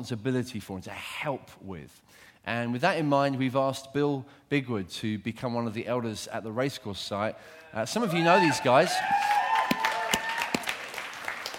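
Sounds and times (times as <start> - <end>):
speech: 0.0 - 9.5
church congregation applause: 8.0 - 11.5.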